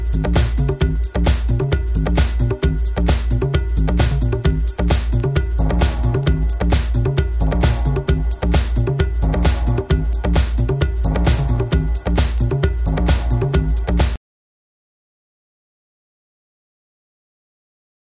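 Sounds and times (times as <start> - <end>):
dub music: 0.0 - 14.2.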